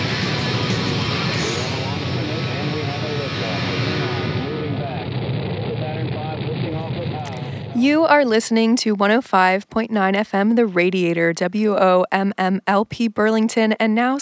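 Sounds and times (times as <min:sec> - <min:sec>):
rocket engines igniting at launch: 0:00.0 - 0:07.8
speech: 0:07.8 - 0:14.1.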